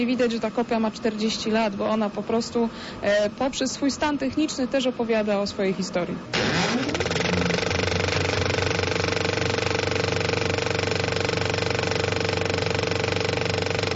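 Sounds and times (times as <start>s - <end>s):
speech: 0.0s - 7.1s
analog 35 mm film projector rattling: 6.4s - 13.9s.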